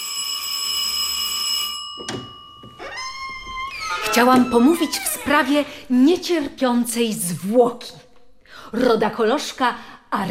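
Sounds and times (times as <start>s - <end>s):
doorbell ringing: 0.0s - 5.4s
speech: 4.2s - 8.0s, 8.7s - 10.2s.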